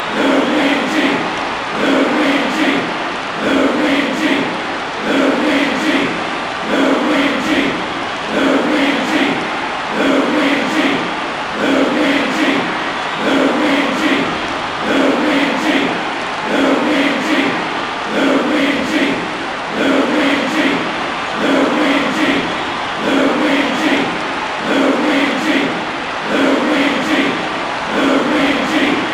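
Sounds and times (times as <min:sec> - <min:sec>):
crowd singing: 0:00.0 - 0:29.1.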